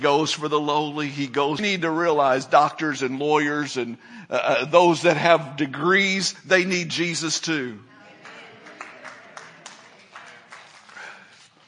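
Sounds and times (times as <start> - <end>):
speech: 0.0 - 7.9
weak audience clapping: 8.1 - 11.6.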